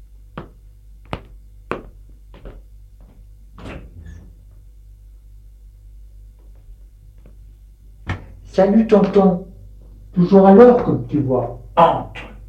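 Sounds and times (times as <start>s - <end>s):
door being opened: 3.6s - 4.5s
speech: 8.6s - 9.5s, 10.2s - 12.3s.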